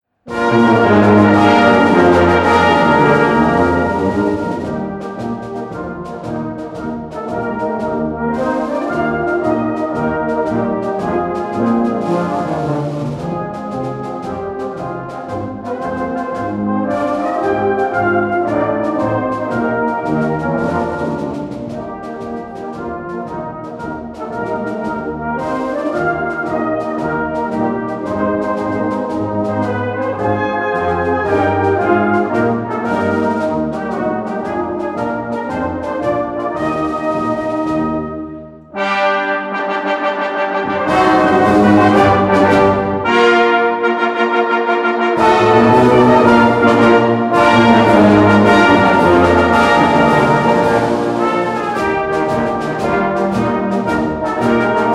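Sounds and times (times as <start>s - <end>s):
march music: 0.0s - 54.9s.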